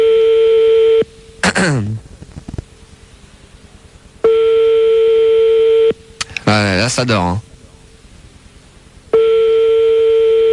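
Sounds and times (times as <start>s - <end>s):
telephone ringing tone on an outgoing call: 0.0s - 1.1s, 4.2s - 6.0s, 9.1s - 10.5s
speech: 1.6s - 2.0s, 6.6s - 7.5s.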